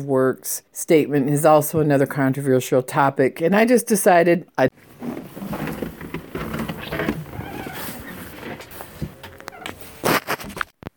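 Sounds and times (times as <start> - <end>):
speech: 0.0 - 5.1
door opening: 4.8 - 10.3
footsteps walking on snow in very frigidly cold weather: 4.8 - 10.5.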